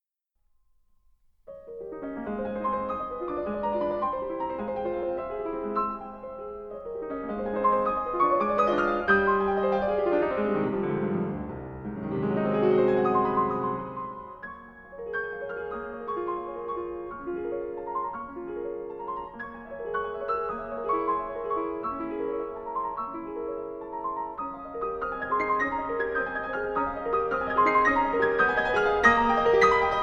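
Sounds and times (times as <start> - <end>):
piano: 0.7 - 30.0.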